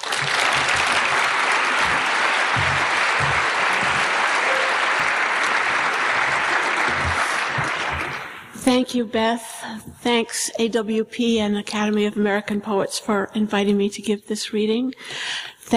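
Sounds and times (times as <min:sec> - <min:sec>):
audience applause welcoming poet Lyn Hejinian at an Academy of American Poets event: 0:00.0 - 0:08.6
speech: 0:08.7 - 0:15.7.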